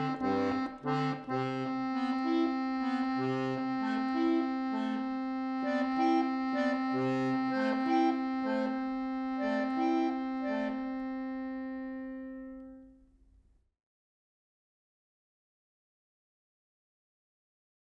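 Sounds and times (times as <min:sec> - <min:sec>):
instrumental music: 0:00.0 - 0:13.4.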